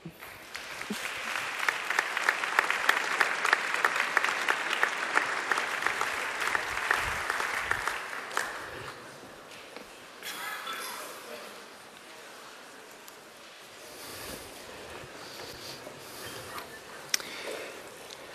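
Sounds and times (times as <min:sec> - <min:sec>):
church congress audience in Augsburg applauding a pastor: 0:00.0 - 0:09.3.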